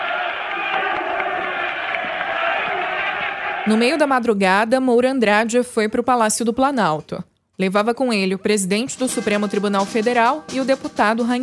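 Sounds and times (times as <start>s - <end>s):
cacophony of shouting crowd: 0.0s - 4.1s
speech: 3.6s - 11.4s.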